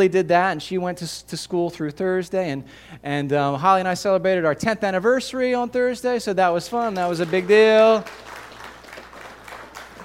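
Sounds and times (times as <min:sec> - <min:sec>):
speech: 0:00.0 - 0:08.3
crowd applause: 0:07.1 - 0:10.0.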